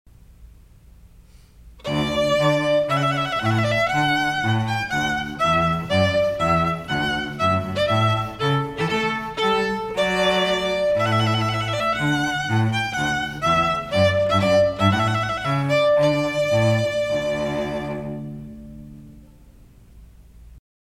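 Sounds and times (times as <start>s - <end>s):
trumpet duo: 1.8s - 18.4s.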